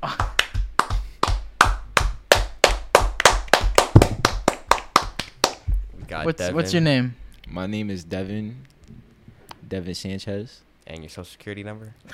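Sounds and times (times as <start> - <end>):
hands clapping: 0.0 - 5.7
speech: 6.2 - 9.0, 9.7 - 12.1.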